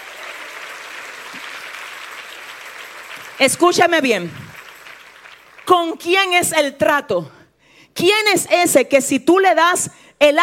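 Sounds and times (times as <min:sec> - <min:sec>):
audience applause: 0:00.0 - 0:05.7
speech: 0:03.4 - 0:04.6, 0:05.7 - 0:07.4, 0:08.0 - 0:10.4.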